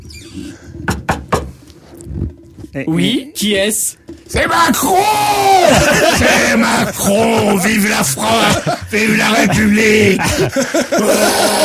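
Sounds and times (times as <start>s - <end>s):
knocking on a door: 0.9s - 1.5s
speech: 2.7s - 11.6s
laughter: 5.0s - 11.6s.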